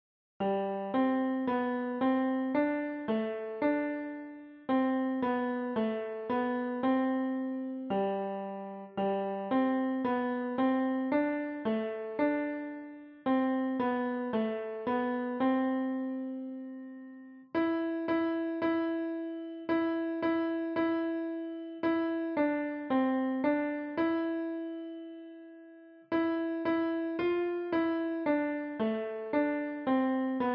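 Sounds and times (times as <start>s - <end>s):
piano: 0.4s - 30.5s.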